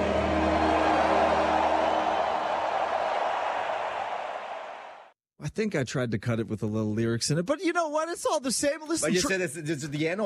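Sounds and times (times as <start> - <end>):
stadium crowd roaring after a national anthem at SoFi Stadium: 0.0 - 5.1
speech: 5.4 - 10.2.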